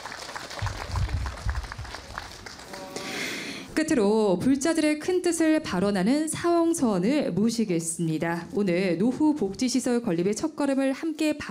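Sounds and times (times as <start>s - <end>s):
audience applause: 0.0s - 3.6s
speech: 3.8s - 11.4s.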